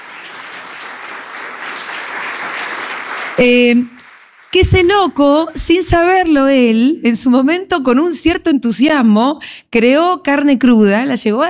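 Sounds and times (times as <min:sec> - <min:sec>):
crowd applause: 0:00.0 - 0:04.7
speech: 0:03.4 - 0:11.4.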